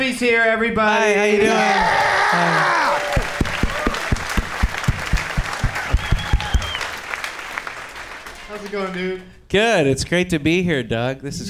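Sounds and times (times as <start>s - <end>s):
speech: 0.1s - 3.3s, 8.6s - 11.4s
crowd noise: 1.4s - 8.9s
audience applause: 1.9s - 9.2s
faint whoops or whistles: 5.8s - 7.0s.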